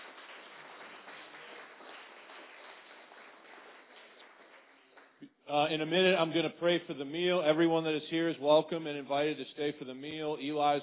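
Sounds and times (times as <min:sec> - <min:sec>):
crowd applauding: 0:00.0 - 0:05.2
speech: 0:05.5 - 0:10.8.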